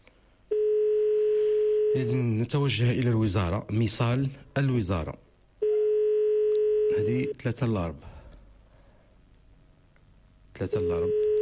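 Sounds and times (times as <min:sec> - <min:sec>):
steady telephone tone on a ministry's phone line: 0:00.5 - 0:02.3, 0:05.6 - 0:07.4, 0:10.7 - 0:11.3
speech: 0:02.0 - 0:05.2, 0:06.9 - 0:08.1, 0:10.6 - 0:11.2.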